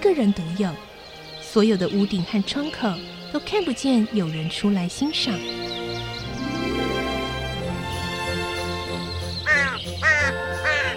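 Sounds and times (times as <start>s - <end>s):
speech: 0.0s - 0.9s, 1.5s - 6.0s
soft sustained music: 0.0s - 10.9s
crows cawing: 9.4s - 10.9s.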